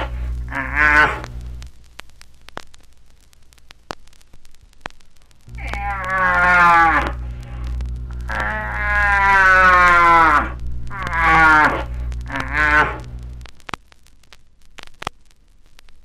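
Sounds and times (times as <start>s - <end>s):
moose calls, drawn-out nasal moans: 0.0s - 1.3s, 5.5s - 13.1s.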